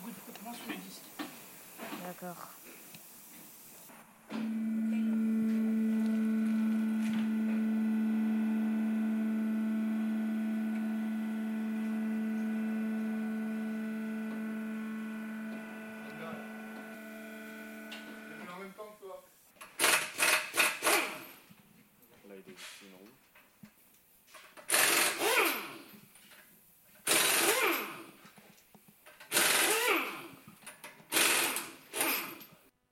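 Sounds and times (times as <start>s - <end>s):
speech: 2.1s - 2.7s
droning hum: 4.0s - 18.5s
pneumatic impact wrench rattling on car wheels: 19.6s - 21.4s, 24.5s - 25.9s, 27.0s - 28.2s, 29.0s - 32.6s.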